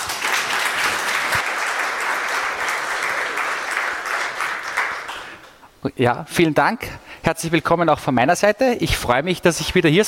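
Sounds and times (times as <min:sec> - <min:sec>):
audience applause: 0:00.0 - 0:05.6
speech: 0:05.8 - 0:10.0.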